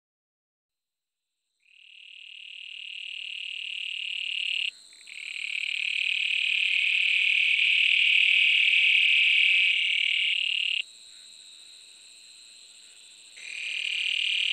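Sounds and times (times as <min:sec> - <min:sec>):
granular toads trilling: 0:01.6 - 0:11.2, 0:13.4 - 0:14.5.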